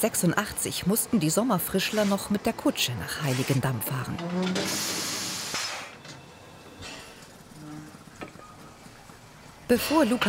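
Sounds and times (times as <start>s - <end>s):
speech: 0.0s - 5.1s, 9.7s - 10.2s
historic steam locomotive hissing steam: 4.6s - 6.0s.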